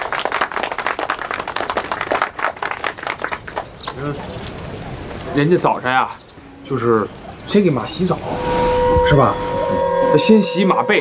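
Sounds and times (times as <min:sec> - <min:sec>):
audience applause: 0:00.0 - 0:04.2
speech: 0:04.0 - 0:04.5, 0:05.2 - 0:10.9.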